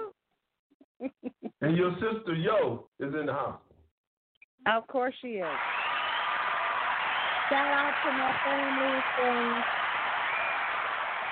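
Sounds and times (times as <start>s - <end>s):
speech: 1.6s - 3.7s, 4.6s - 5.7s, 7.5s - 9.7s
cheering: 5.4s - 11.3s.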